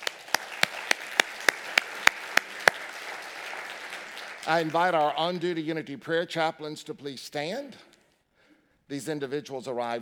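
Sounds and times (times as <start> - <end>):
audience clapping: 0.0 - 5.4
speech: 4.5 - 7.9, 8.9 - 9.9.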